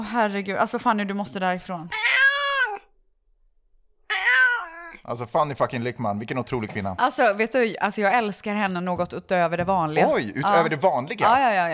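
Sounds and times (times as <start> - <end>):
speech: 0.1 - 2.1, 5.1 - 11.7
cat meows: 1.9 - 2.9, 4.1 - 5.0.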